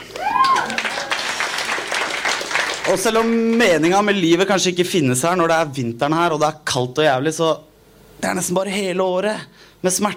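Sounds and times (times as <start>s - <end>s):
audience applause: 0.0s - 3.6s
speech: 2.9s - 10.1s.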